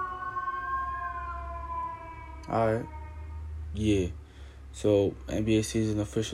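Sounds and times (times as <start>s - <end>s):
fire truck siren: 0.0s - 4.1s
low rumble of traffic: 0.0s - 6.3s
speech: 2.4s - 3.0s, 3.7s - 6.3s.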